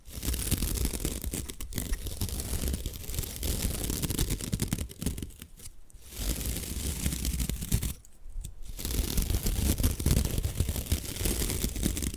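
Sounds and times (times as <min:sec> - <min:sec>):
bamboo being scratched and brushed: 0:00.0 - 0:12.1.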